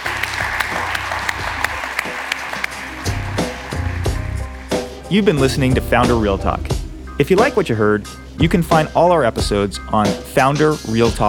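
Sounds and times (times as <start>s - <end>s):
audience applause: 0.0s - 5.0s
speech: 5.1s - 11.2s.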